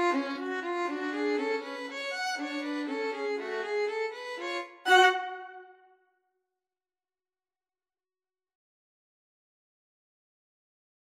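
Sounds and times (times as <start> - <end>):
cello: 0.0 - 5.8
two violins: 0.0 - 5.8.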